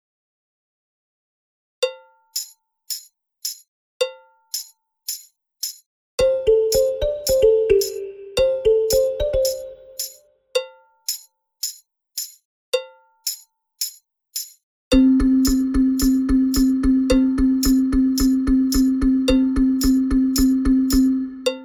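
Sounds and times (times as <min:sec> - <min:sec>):
balafon: 0:06.2 - 0:10.0, 0:14.9 - 0:21.6.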